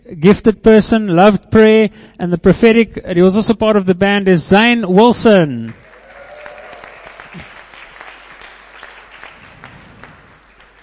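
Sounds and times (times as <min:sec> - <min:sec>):
speech: 0:00.2 - 0:05.9
audience clapping: 0:05.7 - 0:10.8.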